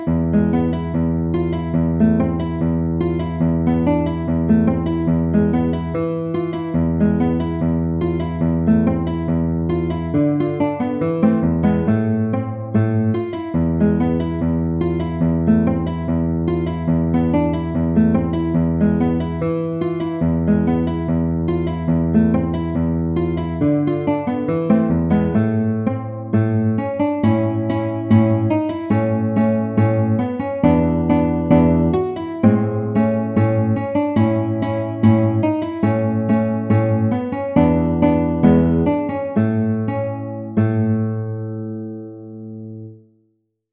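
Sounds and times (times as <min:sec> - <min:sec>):
allegretto grazioso classical guitar piece: 0:00.0 - 0:43.4.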